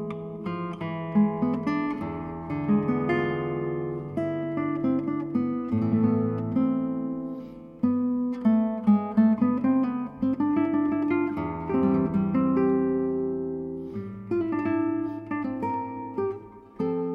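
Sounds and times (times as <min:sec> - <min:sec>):
guitar suite movement in A minor: 0:00.0 - 0:17.1.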